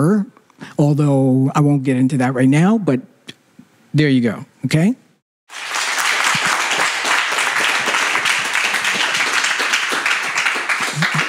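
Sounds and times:
speech: 0.0s - 3.1s, 3.9s - 5.0s
audience applause: 5.5s - 11.2s.

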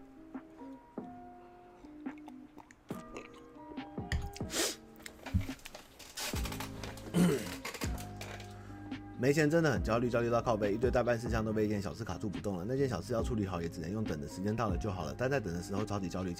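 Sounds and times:
person sipping water: 0.6s - 3.6s, 4.2s - 8.6s
speech: 9.2s - 16.3s.

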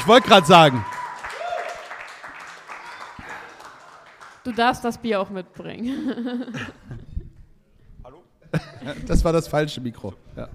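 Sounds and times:
speech: 0.0s - 0.9s, 4.4s - 6.9s, 8.5s - 10.5s
audience applause: 0.0s - 4.9s
laughter: 5.8s - 7.4s.

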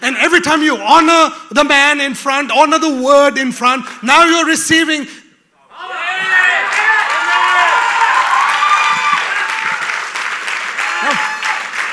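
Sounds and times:
speech: 0.1s - 5.2s
voices cheering and whooping: 5.7s - 10.0s, 10.8s - 11.9s
crowd clapping: 6.6s - 11.9s.

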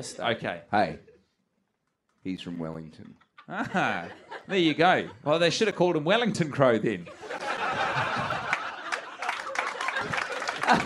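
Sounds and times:
speech: 0.0s - 1.1s, 2.2s - 7.8s, 10.7s - 10.8s
laughter: 3.4s - 6.2s, 7.0s - 10.8s
hand clapping: 8.4s - 10.8s.

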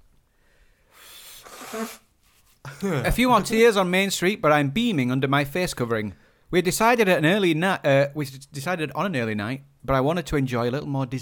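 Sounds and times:
nose blowing: 0.9s - 2.3s
speech: 1.7s - 2.0s, 2.8s - 11.1s.

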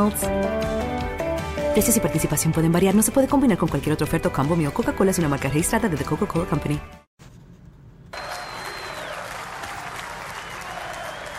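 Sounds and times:
speech: 0.0s - 0.9s, 1.8s - 7.0s
crowd cheering and applause at Derek Jeter's Baseball Hall of Fame induction in Cooperstown: 8.1s - 11.3s.

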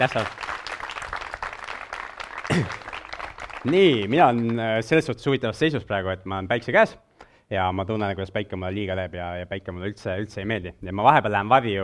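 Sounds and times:
speech: 0.0s - 0.4s, 2.5s - 2.8s, 3.6s - 11.8s
crowd clapping: 0.0s - 5.0s.

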